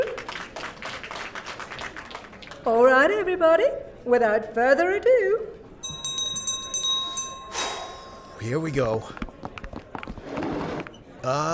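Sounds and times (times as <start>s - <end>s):
crowd applauding: 0.0s - 2.7s
speech: 2.6s - 5.6s, 8.4s - 9.2s, 11.2s - 11.5s.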